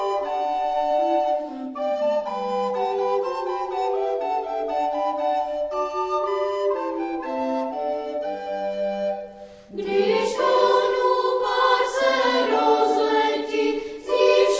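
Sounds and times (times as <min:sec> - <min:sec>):
flute ensemble playing: 0:00.0 - 0:14.5
chamber choir singing: 0:09.7 - 0:14.5.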